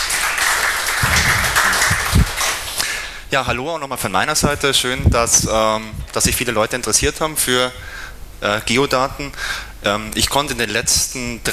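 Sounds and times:
audience applause: 0:00.0 - 0:03.0
speech: 0:03.3 - 0:11.5.

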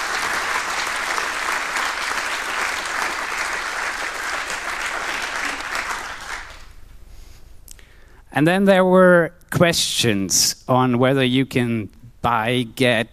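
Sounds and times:
crowd clapping: 0:00.0 - 0:06.8
speech: 0:08.4 - 0:13.1.

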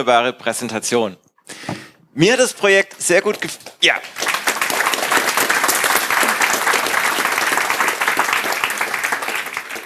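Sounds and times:
speech: 0:00.0 - 0:04.2
audience applause: 0:03.3 - 0:09.8.

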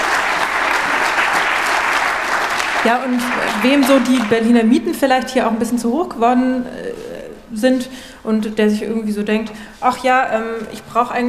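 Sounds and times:
audience applause for a speaker at a talk: 0:00.0 - 0:04.4
speech: 0:02.8 - 0:11.2.

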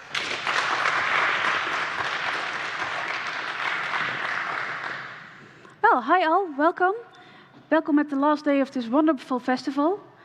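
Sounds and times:
audience applause welcoming a speaker at a festival talk: 0:00.0 - 0:05.6
speech: 0:06.0 - 0:07.1, 0:07.7 - 0:10.1.

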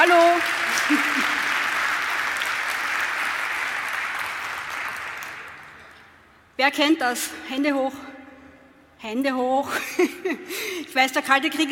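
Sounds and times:
speech: 0:00.0 - 0:01.4, 0:06.6 - 0:08.1, 0:09.0 - 0:11.7
audience applause: 0:00.0 - 0:05.9.

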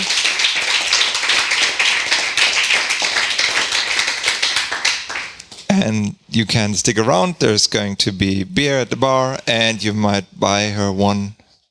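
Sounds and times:
audience applause: 0:00.0 - 0:05.6
speech: 0:05.8 - 0:11.4.

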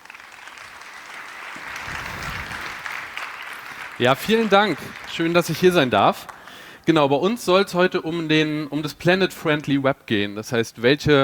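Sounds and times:
audience applause: 0:00.0 - 0:07.0
speech: 0:04.0 - 0:06.3, 0:06.9 - 0:11.2.

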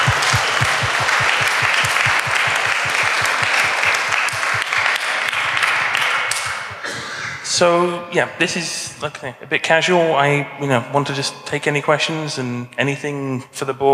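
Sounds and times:
audience applause: 0:00.0 - 0:06.8
speech: 0:07.6 - 0:13.9.

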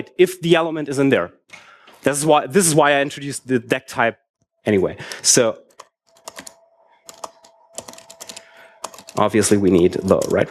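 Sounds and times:
speech: 0:00.1 - 0:05.6, 0:09.2 - 0:10.5
typing on a computer keyboard: 0:05.1 - 0:10.5.

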